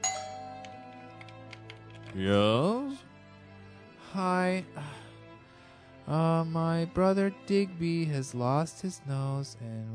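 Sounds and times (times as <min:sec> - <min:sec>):
doorbell ringing: 0:00.0 - 0:01.4
speech: 0:02.1 - 0:03.0, 0:04.1 - 0:05.0, 0:06.1 - 0:09.9.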